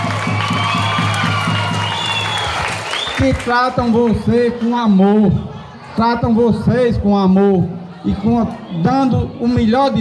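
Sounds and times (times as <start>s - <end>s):
clapping and cheering for teachers at a school event: 0.0s - 5.0s
speech: 3.2s - 10.0s.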